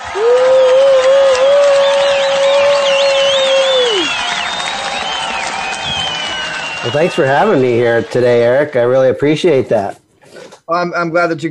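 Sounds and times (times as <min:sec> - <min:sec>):
crowd applause and cheering: 0:00.0 - 0:09.7
high wavering whistles: 0:00.5 - 0:08.0
speech: 0:06.9 - 0:10.0, 0:10.7 - 0:11.5.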